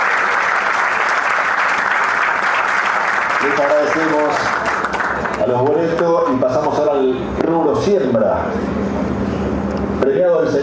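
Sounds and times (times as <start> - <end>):
audience applause: 0.0 - 6.3
speech: 3.4 - 4.6, 5.4 - 9.2, 10.0 - 10.6.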